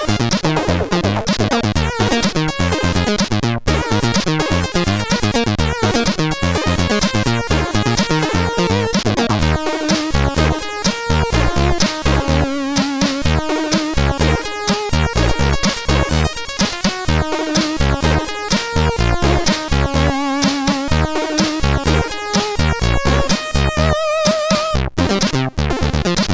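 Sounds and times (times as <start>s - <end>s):
slap bass funk music: 0.0s - 26.3s.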